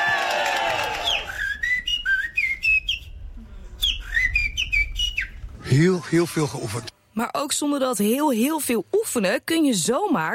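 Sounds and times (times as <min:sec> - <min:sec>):
person whistling an imitation of blackbird song: 0:01.0 - 0:03.1, 0:03.8 - 0:05.4
speech: 0:05.7 - 0:10.3.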